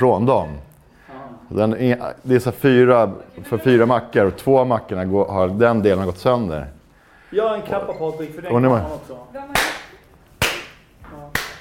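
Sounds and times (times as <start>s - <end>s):
speech: 0.0s - 0.7s, 1.5s - 9.8s
hand clapping: 9.5s - 11.5s.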